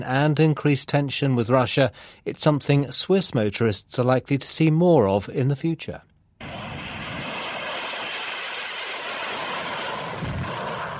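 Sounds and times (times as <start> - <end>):
speech: 0.0 - 6.1
Swiss Air Force plane taking off: 6.4 - 10.9.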